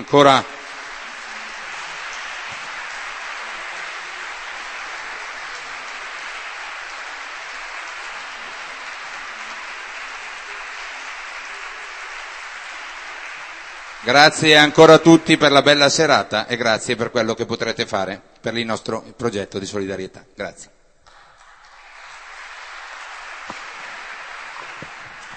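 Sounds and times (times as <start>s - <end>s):
speech: 0.0s - 0.5s, 14.0s - 20.8s
audience applause: 0.0s - 15.7s, 21.1s - 25.3s.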